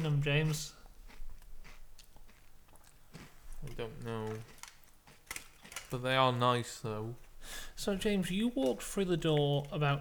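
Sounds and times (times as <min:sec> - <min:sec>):
speech: 0:00.0 - 0:00.8, 0:03.6 - 0:04.6, 0:05.9 - 0:09.9
eating crunchy Dairy Dunkers snack: 0:00.4 - 0:06.0.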